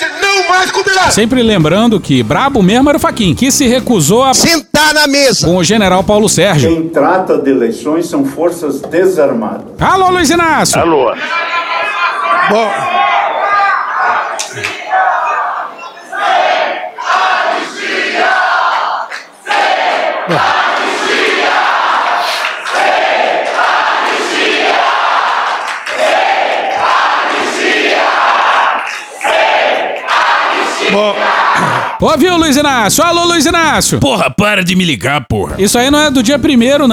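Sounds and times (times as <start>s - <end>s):
speech: 0.6s - 11.8s, 12.4s - 13.0s, 32.0s - 36.9s
crowd shouting in palace: 9.8s - 32.5s.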